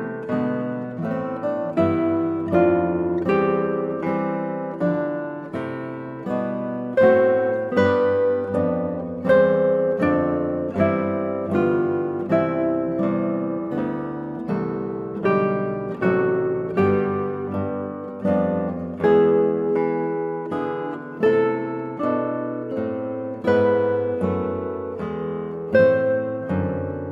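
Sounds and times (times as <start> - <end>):
slow guitar piece: 0.0 - 27.1.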